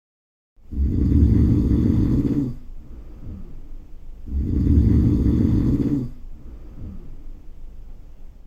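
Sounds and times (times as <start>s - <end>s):
loud snoring of a wolf: 0.7s - 2.7s, 4.3s - 6.2s.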